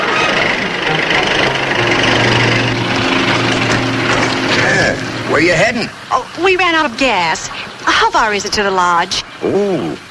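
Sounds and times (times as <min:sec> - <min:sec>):
car approaching: 0:00.0 - 0:07.0
speech: 0:05.4 - 0:10.0.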